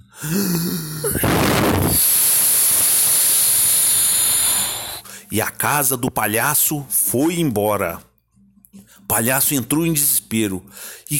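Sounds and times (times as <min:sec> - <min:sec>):
person blowing hard like a wolf huffing: 0:00.1 - 0:05.1
speech: 0:00.2 - 0:02.1, 0:05.3 - 0:08.1, 0:09.1 - 0:11.1.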